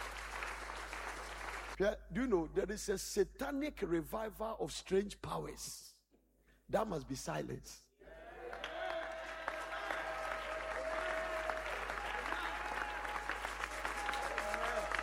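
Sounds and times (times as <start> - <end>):
audience clapping: 0.0 - 1.8, 8.4 - 15.0
speech: 1.8 - 5.9, 6.7 - 7.8.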